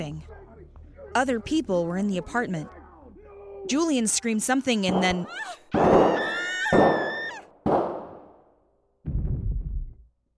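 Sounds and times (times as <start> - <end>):
speech: 0.0 - 2.8, 3.6 - 6.8
gunshots: 4.8 - 8.4.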